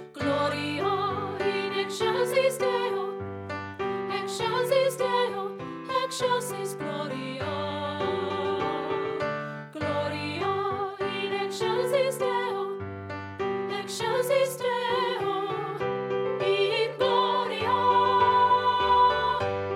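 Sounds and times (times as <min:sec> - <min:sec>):
treble voice singing a festive Gloria: 0:00.1 - 0:03.2, 0:04.1 - 0:12.8, 0:13.7 - 0:19.7.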